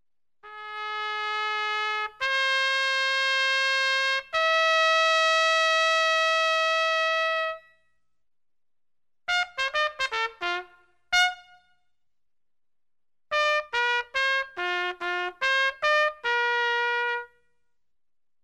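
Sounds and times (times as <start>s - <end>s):
trumpet fanfare: 0.4s - 7.7s, 9.3s - 11.7s, 13.3s - 17.4s.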